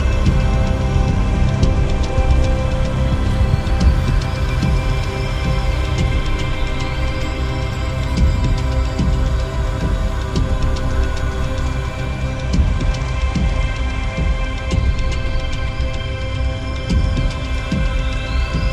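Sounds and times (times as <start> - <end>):
ambient soundscape: 0.0 - 18.7.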